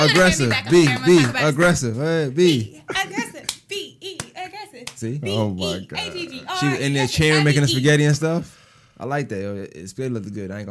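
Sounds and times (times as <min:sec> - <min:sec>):
crowd clapping and cheering: 0:00.0 - 0:01.6
speech: 0:00.0 - 0:03.1, 0:05.0 - 0:10.6.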